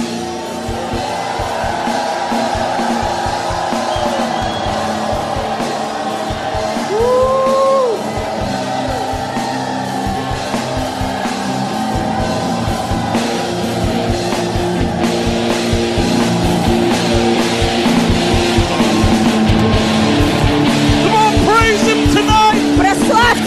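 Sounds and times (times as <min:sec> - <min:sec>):
congregation at a church service shouting praise: 0:00.0 - 0:23.4
yells and whoops from a congregation: 0:00.1 - 0:23.4.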